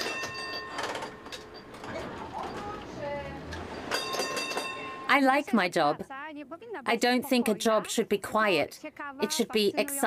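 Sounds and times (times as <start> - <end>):
tram rumbling along rails: 0.0 - 5.1
speech: 5.2 - 10.0.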